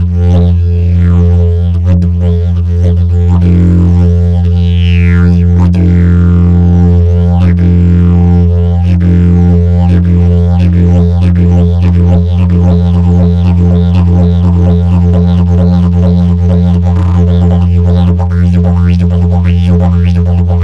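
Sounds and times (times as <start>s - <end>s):
didgeridoos playing: 0.0s - 20.6s.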